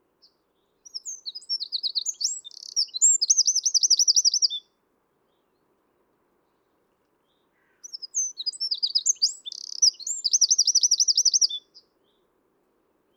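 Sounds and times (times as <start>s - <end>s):
Eurasian wren Troglodytes troglodytes singing: 0.8s - 4.6s, 7.8s - 11.9s.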